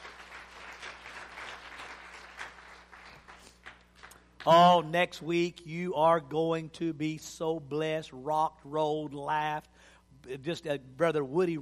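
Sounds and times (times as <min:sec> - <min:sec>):
congregation applauding with hand claps during a church service: 0:00.0 - 0:04.8
low hum: 0:00.0 - 0:11.6
speech: 0:04.4 - 0:11.6.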